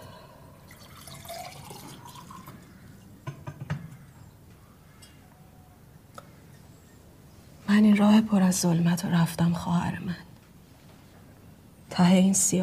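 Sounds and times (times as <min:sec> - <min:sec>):
water poured for someone in a room: 0:00.6 - 0:02.7
small drips and light ticks: 0:00.7 - 0:03.4
speech: 0:07.8 - 0:10.3, 0:12.0 - 0:12.6.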